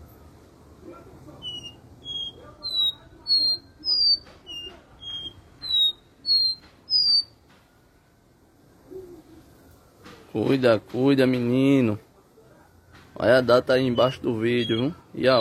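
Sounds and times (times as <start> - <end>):
low background noise: 0.0 - 15.3
copper seedeater whistled notes: 1.4 - 7.4, 13.8 - 15.3
speech: 10.4 - 12.1, 13.2 - 15.3.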